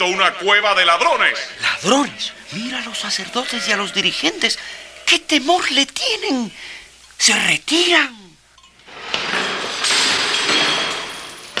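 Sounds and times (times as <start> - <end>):
speech: 0.0 - 8.2
coins scattering and clinking: 8.9 - 11.5.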